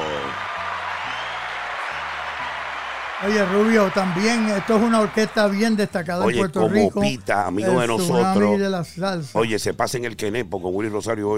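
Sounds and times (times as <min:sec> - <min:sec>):
audience applause: 0:00.0 - 0:06.2
speech: 0:03.2 - 0:11.3.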